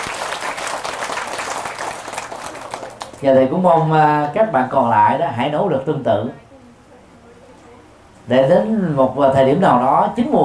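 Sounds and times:
audience applause: 0.0 - 3.2
speech: 3.2 - 6.4, 8.3 - 10.4.

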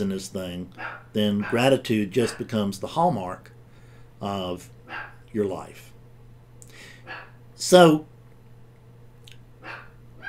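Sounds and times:
speech: 0.0 - 3.6, 4.2 - 5.9, 7.1 - 8.1
low steady hum: 0.0 - 10.2
dog barking: 0.8 - 2.5, 4.9 - 5.2, 7.0 - 7.4, 9.6 - 10.2.

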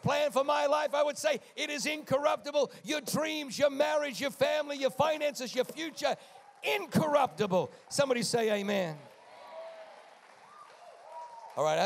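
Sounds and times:
speech: 0.0 - 9.1, 11.6 - 11.8
audience cheering and clapping: 4.8 - 11.8
faint whoops: 9.3 - 11.6.

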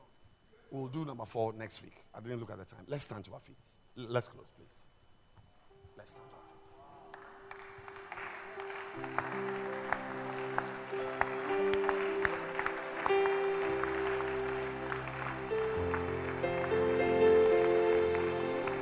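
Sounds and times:
speech: 0.7 - 4.9, 6.0 - 6.5, 9.0 - 9.5
audience clapping: 7.0 - 18.8.

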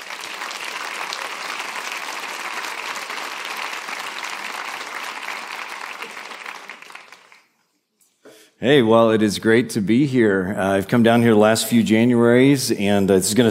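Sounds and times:
audience applause: 0.0 - 7.6
speech: 8.6 - 13.4.

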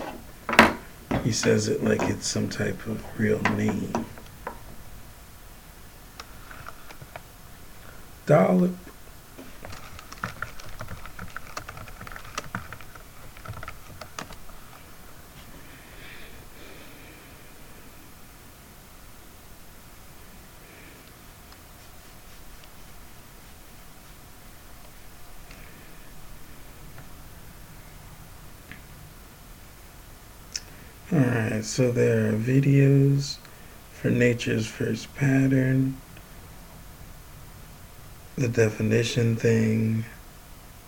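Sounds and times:
low hiss: 0.0 - 40.8
speech: 1.2 - 4.1, 8.3 - 8.9, 31.7 - 33.4, 34.0 - 36.0, 38.4 - 40.2
typing a Google search on a computer keyboard: 9.6 - 14.5.

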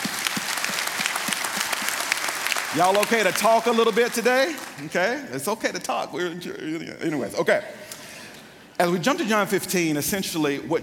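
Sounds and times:
audience clapping: 0.0 - 5.2
speech: 2.7 - 7.8, 8.8 - 10.8.

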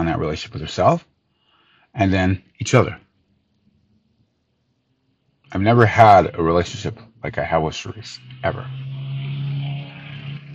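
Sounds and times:
speech: 0.2 - 1.1, 1.9 - 3.0, 5.5 - 8.8
car flying by: 7.8 - 10.5.

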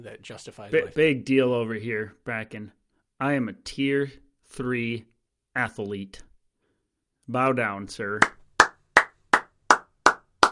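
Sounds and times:
speech: 0.0 - 6.3, 7.3 - 8.4
fast clapping: 8.2 - 10.5.

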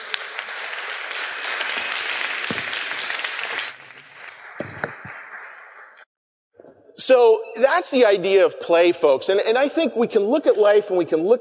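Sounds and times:
audience applause: 0.0 - 6.1
speech: 7.1 - 11.3.

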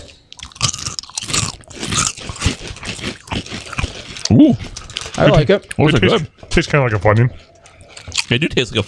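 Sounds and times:
crunching kettle cooked potato chips being chewed: 0.0 - 5.4
speech: 4.3 - 7.5, 8.3 - 8.8.

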